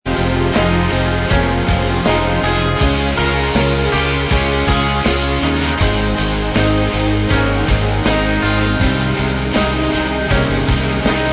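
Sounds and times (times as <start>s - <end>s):
instrumental backing track: 0.0s - 11.3s.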